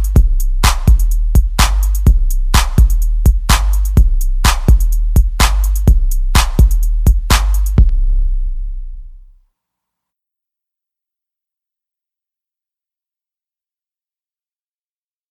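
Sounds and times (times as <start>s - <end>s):
breakbeat track: 0.0s - 9.2s.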